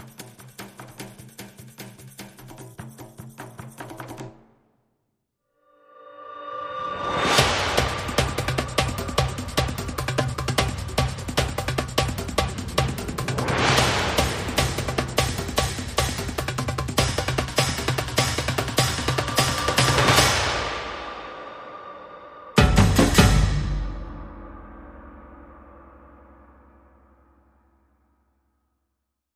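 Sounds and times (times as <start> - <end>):
small percussion: 0.0 - 4.5, 7.1 - 21.0, 22.6 - 24.2.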